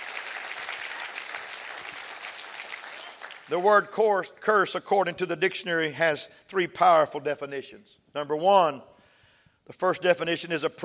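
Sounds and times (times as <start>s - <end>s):
crowd clapping hands: 0.0s - 3.8s
speech: 3.5s - 8.9s, 9.7s - 10.8s.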